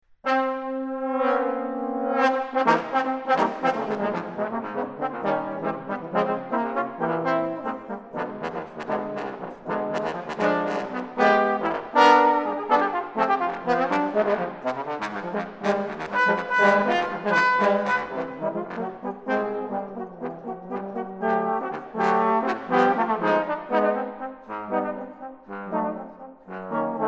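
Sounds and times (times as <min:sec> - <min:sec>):
quartet playing: 0:00.3 - 0:27.0.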